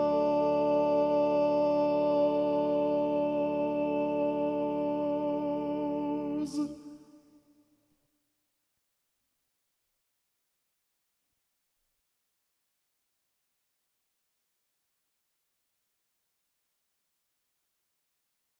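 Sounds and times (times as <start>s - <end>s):
soprano singing: 0.0s - 7.2s.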